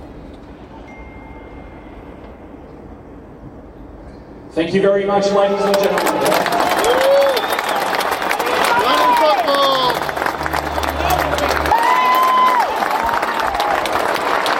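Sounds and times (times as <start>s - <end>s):
low droning hum: 0.0s - 14.4s
speech: 4.5s - 7.1s
crowd clapping and cheering: 5.5s - 14.5s
whistles and whoops: 6.3s - 10.1s, 11.6s - 13.9s.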